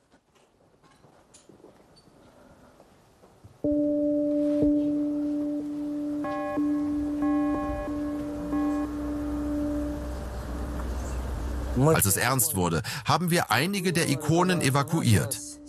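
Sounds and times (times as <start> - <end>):
church bell ringing: 3.7 - 11.8
speech: 11.9 - 15.5.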